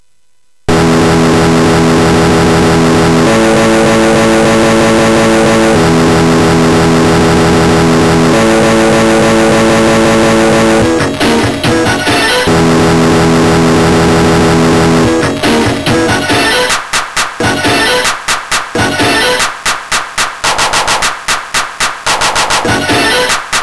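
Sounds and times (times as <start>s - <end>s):
digital guitar on MOS6581R4 sound chip: 0.7s - 23.6s.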